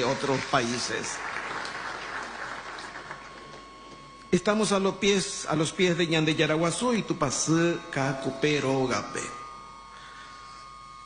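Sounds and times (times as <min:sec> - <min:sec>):
speech: 0:00.0 - 0:01.4, 0:04.3 - 0:09.4
church congregation applause welcoming priests from Poland: 0:00.0 - 0:04.0.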